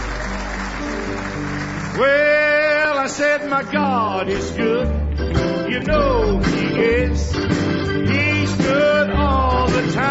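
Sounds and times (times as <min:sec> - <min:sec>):
congregation clapping hands in praise during a church service: 0:00.0 - 0:03.6
speech: 0:02.0 - 0:02.2, 0:03.1 - 0:10.0.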